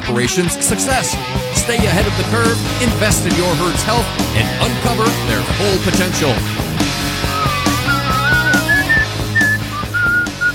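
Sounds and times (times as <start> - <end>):
speech: 0.1 - 6.6
steady low musical backing: 0.6 - 10.5
clear high whistled melody: 7.2 - 10.5.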